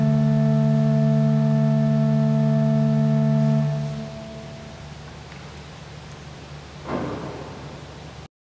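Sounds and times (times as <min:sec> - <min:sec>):
improvised music: 0:00.0 - 0:05.3.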